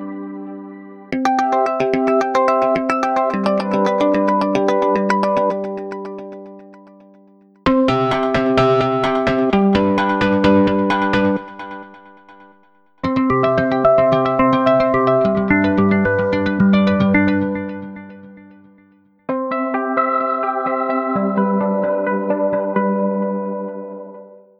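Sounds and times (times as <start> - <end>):
electric arpeggios: 0.0 - 7.1, 7.7 - 24.3.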